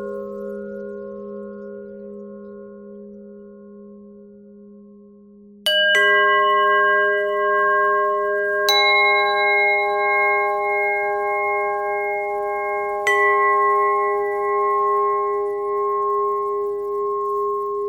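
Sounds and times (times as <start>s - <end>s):
pentatonic bell melody: 5.6s - 17.8s.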